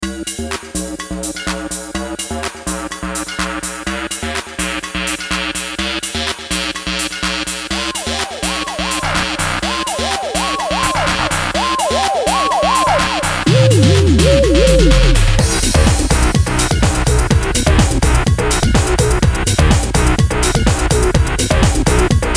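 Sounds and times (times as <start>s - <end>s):
jungle beat: 0.0s - 22.3s.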